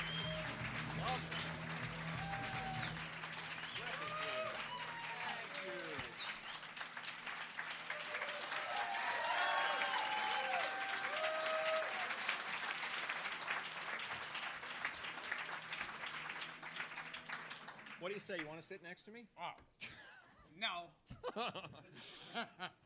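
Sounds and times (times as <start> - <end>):
crowd voices and cheers: 0.0 - 18.5
audience applause greeting comedian Gilbert Gottfried: 0.0 - 18.6
speech: 18.2 - 19.8, 20.6 - 22.8.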